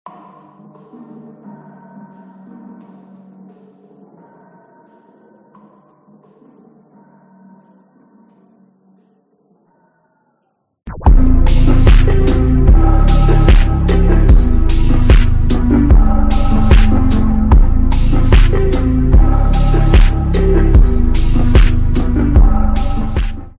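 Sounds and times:
slowed reverb music: 10.9 - 23.5.

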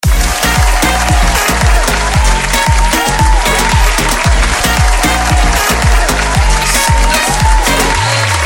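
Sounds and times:
applause: 0.0 - 8.4.

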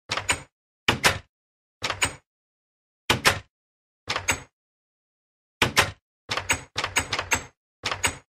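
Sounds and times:
Minecraft door sound effect: 0.1 - 2.3, 3.1 - 3.5, 4.1 - 4.5, 5.6 - 8.2.

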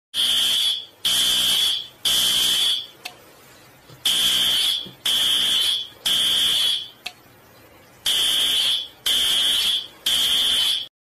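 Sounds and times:
loud fire drill alarm: 0.2 - 3.0, 4.0 - 7.0, 8.0 - 10.9.

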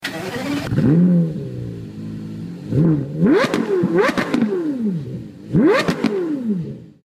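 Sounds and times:
Porsche Carrera: 0.0 - 7.0.

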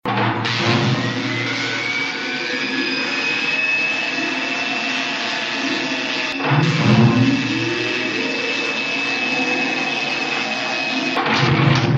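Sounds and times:
laboratory sounds: 0.0 - 11.9.

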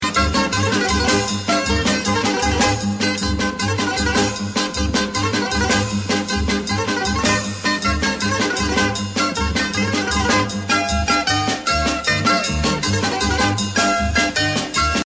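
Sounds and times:
sirtaki Greek dance music: 0.0 - 15.0.

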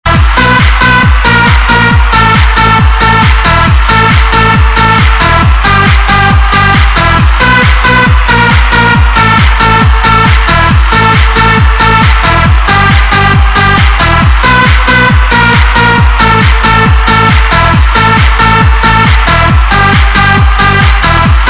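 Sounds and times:
trance music: 0.0 - 21.4.

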